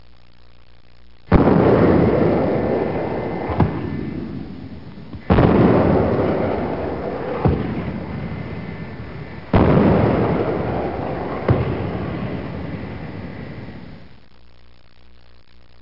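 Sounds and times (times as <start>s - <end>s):
blasts: 1.3s - 14.2s.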